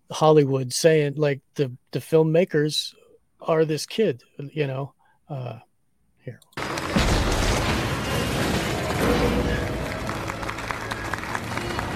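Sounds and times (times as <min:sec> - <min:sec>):
speech: 0:00.1 - 0:05.7, 0:06.3 - 0:06.5
crowd applauding in a film excerpt: 0:06.6 - 0:07.0, 0:07.9 - 0:11.9.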